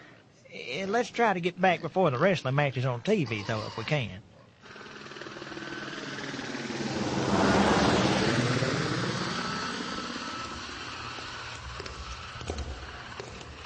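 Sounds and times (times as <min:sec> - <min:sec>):
speech: 0:00.6 - 0:04.3
helicopter flying: 0:03.0 - 0:13.6.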